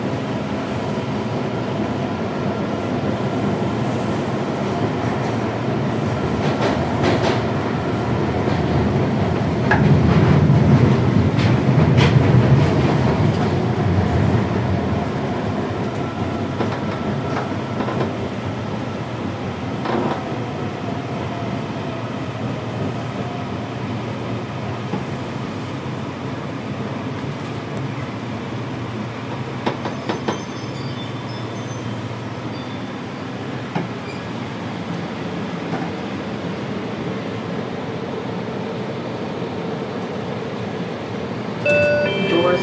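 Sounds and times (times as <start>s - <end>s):
metro train rumbling through Farragut North station: 0.0s - 42.6s
faint squeals and clicks of wheels on rails: 29.7s - 34.7s.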